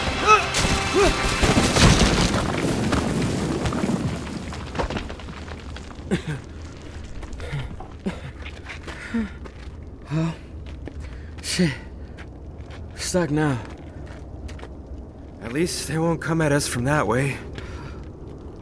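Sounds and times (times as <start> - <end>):
falling debris: 0.0 - 8.6
cave caving in during a fire: 0.0 - 18.5
speech: 13.2 - 13.8, 15.6 - 17.5.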